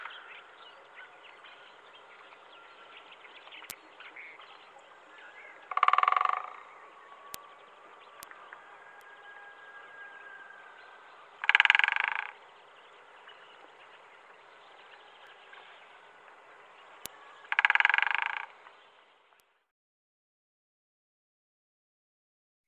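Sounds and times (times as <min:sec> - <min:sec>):
Syrian woodpecker chattering and kik calls: 0:05.7 - 0:06.7, 0:11.4 - 0:12.4, 0:17.5 - 0:18.5.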